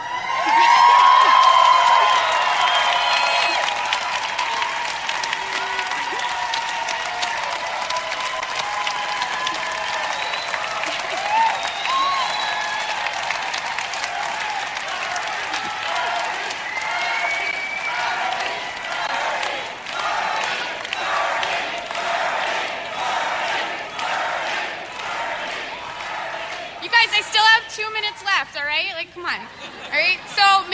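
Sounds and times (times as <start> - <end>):
crowd cheering and applauding: 0.0 - 28.8
crowd chanting for Bernie: 14.0 - 27.4.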